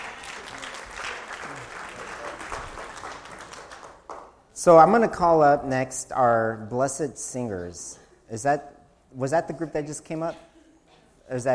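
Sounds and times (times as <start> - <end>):
crowd applauding: 0.0 - 4.4
speech: 4.6 - 10.5, 11.3 - 11.5.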